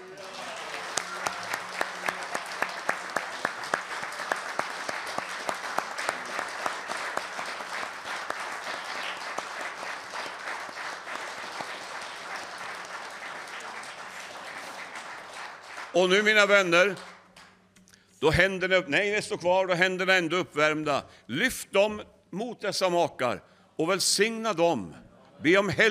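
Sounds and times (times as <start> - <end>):
audience applause: 0.0 - 17.2
speech: 16.0 - 17.1, 18.2 - 25.8.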